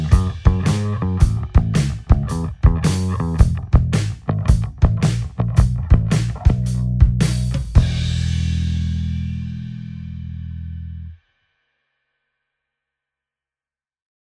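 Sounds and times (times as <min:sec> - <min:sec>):
blues music: 0:00.0 - 0:11.1.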